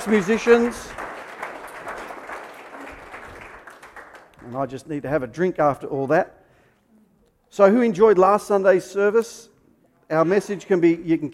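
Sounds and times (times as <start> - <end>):
speech: 0.0 - 1.1, 4.5 - 6.4, 7.5 - 9.5, 10.1 - 11.3
audience clapping: 0.0 - 4.9.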